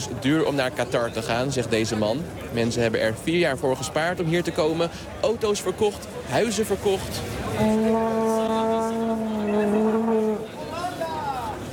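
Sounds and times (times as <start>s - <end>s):
speech: 0.0s - 8.1s
noisy crowd: 0.0s - 11.7s
fan in Qatar blowing a blue-and-white plastic football horn: 7.6s - 10.5s.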